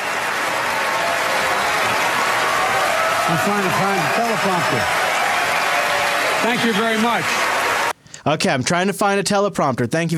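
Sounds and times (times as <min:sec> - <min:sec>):
applause in a played recording: 0:00.0 - 0:08.0
speech: 0:03.3 - 0:05.1, 0:06.4 - 0:07.5, 0:08.2 - 0:10.1.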